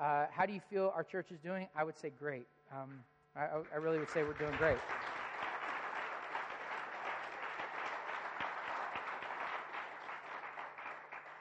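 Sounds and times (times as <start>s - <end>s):
speech: 0.0s - 5.1s
audience applauding: 3.8s - 11.3s.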